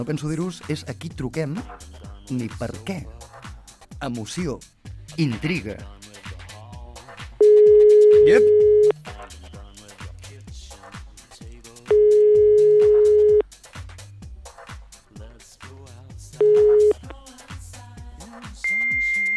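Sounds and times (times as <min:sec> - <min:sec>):
speech: 0:00.0 - 0:03.3, 0:04.0 - 0:06.0, 0:08.1 - 0:08.7
fax machine tones on a telephone call: 0:07.4 - 0:08.9, 0:11.9 - 0:13.4, 0:16.4 - 0:17.0, 0:18.7 - 0:19.3.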